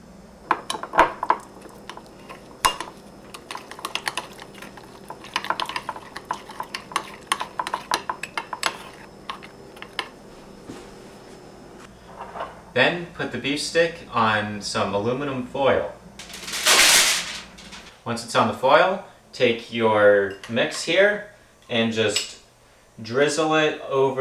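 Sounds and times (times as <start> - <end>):
utensil clinking against a dish while stirring brown sugar and mustard glaze: 0.6 - 10.1
speech: 12.8 - 16.0, 18.1 - 22.3, 23.0 - 24.1.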